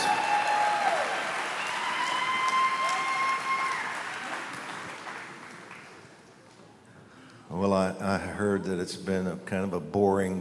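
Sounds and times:
audience applause: 0:00.0 - 0:06.2
speech: 0:07.8 - 0:10.3.

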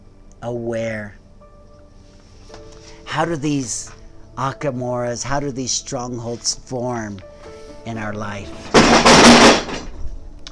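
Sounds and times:
speech: 0:00.4 - 0:01.2, 0:03.2 - 0:09.3
table knocked over by wind: 0:08.6 - 0:10.0.

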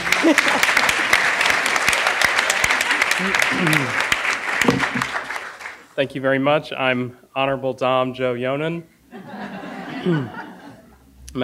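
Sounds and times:
laughter: 0:00.0 - 0:05.2, 0:09.1 - 0:11.0
audience applause: 0:00.0 - 0:05.9
speech: 0:00.2 - 0:00.8, 0:03.2 - 0:04.0, 0:04.6 - 0:05.2, 0:06.0 - 0:09.4, 0:10.0 - 0:10.4.

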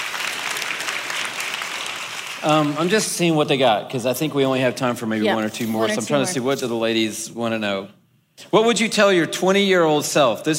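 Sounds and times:
audience applause: 0:00.0 - 0:03.5
speech: 0:02.4 - 0:10.5.

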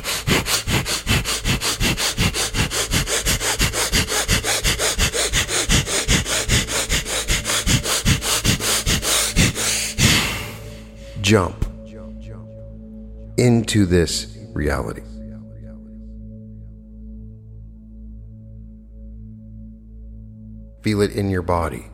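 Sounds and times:
rapid forceful sniffing breaths through the nose during a guided breathing exercise: 0:00.0 - 0:11.4
speech: 0:11.3 - 0:11.6, 0:13.4 - 0:15.1, 0:20.8 - 0:21.9.

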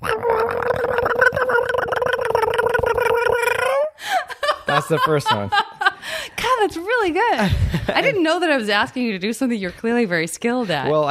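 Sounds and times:
person imitating a cat's rhythmic running meows: 0:00.0 - 0:03.9
laughter: 0:04.1 - 0:06.2, 0:07.2 - 0:08.4
speech: 0:04.9 - 0:05.7, 0:06.7 - 0:11.0.

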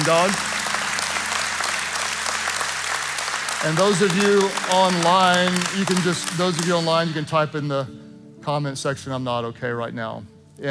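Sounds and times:
speech: 0:00.0 - 0:00.5, 0:03.6 - 0:10.6
audience clapping: 0:00.0 - 0:07.4.

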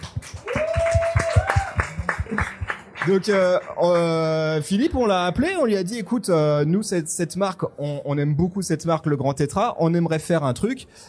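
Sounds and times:
audience applause: 0:00.0 - 0:04.1
speech: 0:03.1 - 0:11.0.

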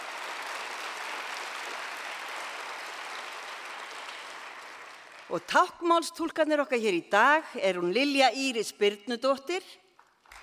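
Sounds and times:
audience applause for sign language interpreters: 0:00.0 - 0:05.3
speech: 0:05.3 - 0:09.8.

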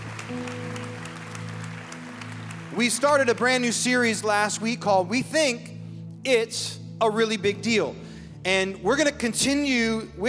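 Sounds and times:
faint audience applause: 0:00.0 - 0:03.7
speech: 0:02.8 - 0:10.2.

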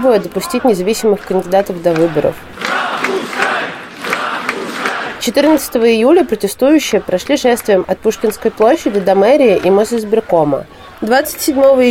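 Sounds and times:
speech: 0:00.0 - 0:02.6, 0:05.2 - 0:11.8
large crowd chanting in unison: 0:00.0 - 0:11.8.

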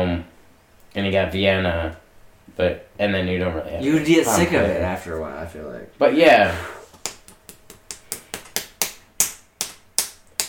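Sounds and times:
speech: 0:01.1 - 0:06.8
hand slapping skin over tattoo: 0:06.9 - 0:10.4.

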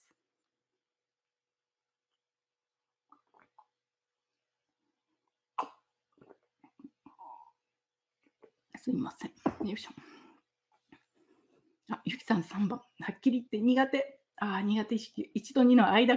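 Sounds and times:
person sipping and swallowing water: 0:03.0 - 0:04.0, 0:05.6 - 0:07.7
speech: 0:08.9 - 0:10.2, 0:12.1 - 0:16.1.

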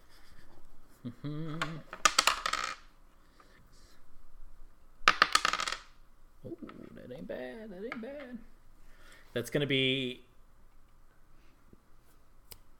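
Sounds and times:
speech: 0:01.0 - 0:02.0, 0:07.2 - 0:08.5, 0:09.3 - 0:10.3
two eight-sided dice rolled during a tabletop role-playing game: 0:01.5 - 0:02.9, 0:05.0 - 0:06.0.

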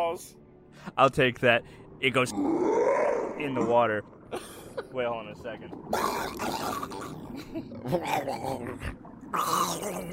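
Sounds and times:
speech: 0:00.0 - 0:10.1
person imitating drowning gurgles: 0:05.8 - 0:10.1.

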